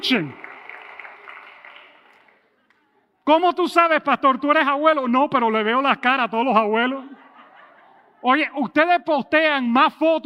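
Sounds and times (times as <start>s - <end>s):
speech: 0.0s - 0.4s, 3.3s - 7.2s, 8.2s - 10.2s
audience applause: 0.0s - 2.6s
laughter: 6.6s - 8.7s.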